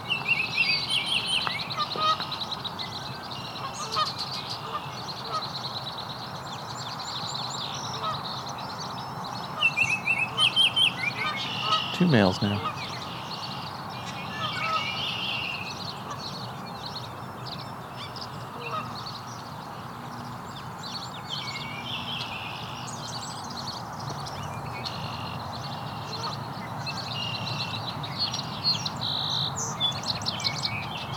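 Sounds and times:
song sparrow singing: 0.0 - 31.1
speech: 12.1 - 12.8.

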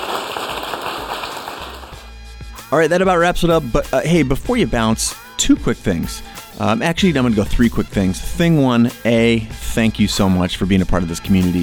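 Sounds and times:
audience applause: 0.0 - 2.1
speech: 2.7 - 11.6.

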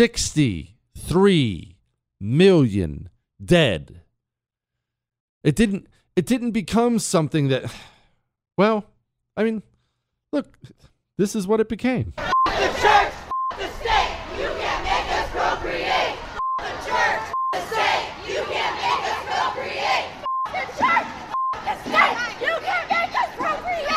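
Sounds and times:
speech: 0.0 - 4.0, 5.4 - 7.9, 8.6 - 9.7, 10.3 - 12.3
protest crowd chanting: 12.2 - 23.9.

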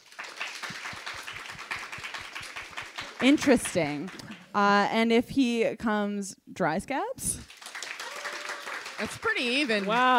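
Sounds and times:
audience clapping: 0.0 - 4.6, 7.4 - 10.1
speech: 3.2 - 7.4, 9.0 - 10.1.

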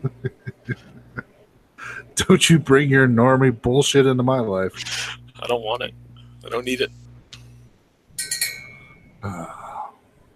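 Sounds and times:
laughter: 0.0 - 2.1
speech: 0.7 - 0.9, 2.2 - 7.0
small bell ringing: 8.2 - 9.2.

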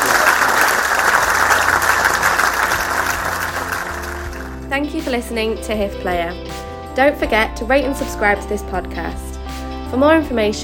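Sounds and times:
sustained applause from a large audience: 0.0 - 4.7
speech: 4.8 - 9.3, 9.9 - 10.6.

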